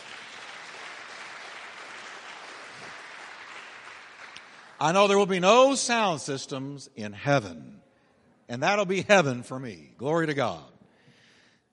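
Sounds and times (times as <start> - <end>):
crowd applauding: 0.0 - 5.3
speech: 4.8 - 7.8, 8.5 - 10.7.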